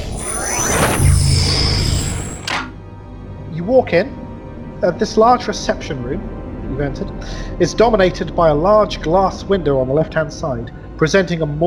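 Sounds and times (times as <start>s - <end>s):
sci-fi reception door sliding open: 0.0s - 2.8s
speech: 3.7s - 4.2s, 4.8s - 11.6s.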